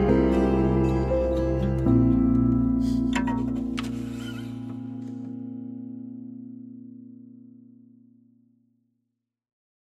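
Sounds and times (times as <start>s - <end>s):
acoustic music: 0.0s - 7.7s.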